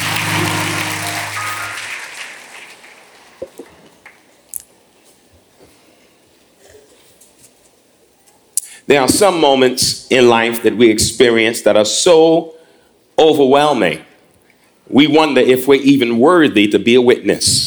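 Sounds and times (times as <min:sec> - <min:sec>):
audience applause: 0:00.0 - 0:04.3
speech: 0:08.9 - 0:12.5, 0:13.2 - 0:14.1, 0:14.9 - 0:17.6.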